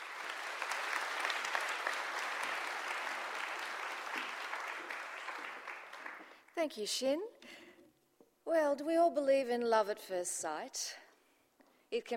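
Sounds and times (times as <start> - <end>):
audience applause: 0.0 - 6.4
speech: 6.6 - 7.6, 8.5 - 11.0, 11.9 - 12.1.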